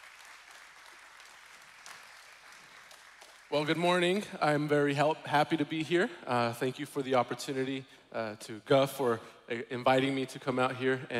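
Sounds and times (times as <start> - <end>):
church congregation applause welcoming a guest speaker before a Sunday sermon: 0.0 - 4.6
speech: 3.5 - 11.1.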